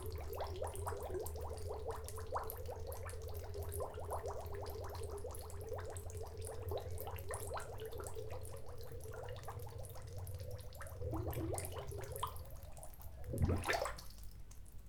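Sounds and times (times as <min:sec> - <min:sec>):
bubbles in water: 0:00.0 - 0:14.2.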